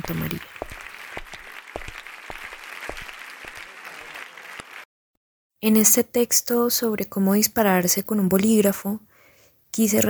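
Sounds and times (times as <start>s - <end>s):
speech: 0.0s - 0.7s, 5.6s - 9.1s, 9.8s - 10.0s
crowd audience applause: 0.0s - 4.9s.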